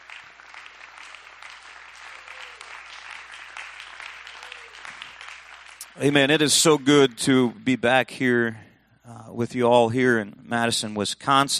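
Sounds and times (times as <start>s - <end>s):
audience clapping hands: 0.0s - 7.5s
speech: 6.0s - 11.5s.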